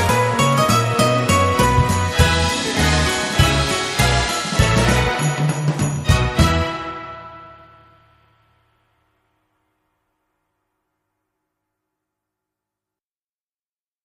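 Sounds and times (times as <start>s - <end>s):
jazz Christmas carol: 0.0s - 8.3s.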